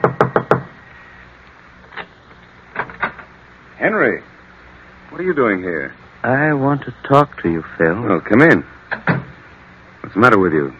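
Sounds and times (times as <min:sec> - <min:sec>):
knocking on a door: 0:00.0 - 0:00.7
speech: 0:03.8 - 0:04.3, 0:05.2 - 0:08.8, 0:10.1 - 0:10.7.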